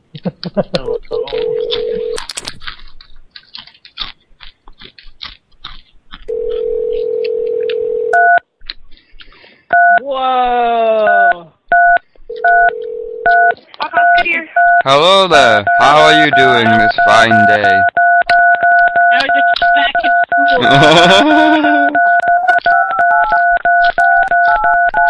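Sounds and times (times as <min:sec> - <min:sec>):
laughter: 0:00.1 - 0:01.2, 0:20.0 - 0:22.4
speech: 0:00.2 - 0:01.6, 0:14.9 - 0:17.9, 0:20.6 - 0:21.8
telephone dial tone: 0:01.1 - 0:02.2, 0:06.3 - 0:08.4, 0:11.1 - 0:13.5, 0:16.4 - 0:25.0
touch-tone telephone keypad beeps: 0:06.3 - 0:08.4, 0:09.7 - 0:10.0, 0:11.1 - 0:25.0.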